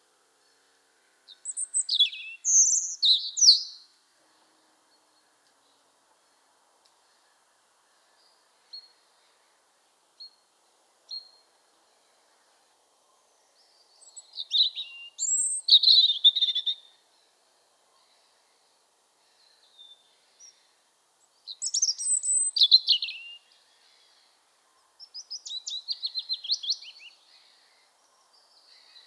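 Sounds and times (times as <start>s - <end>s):
European robin song: 1.3s - 3.9s, 13.5s - 17.0s, 21.3s - 24.3s, 25.0s - 27.6s.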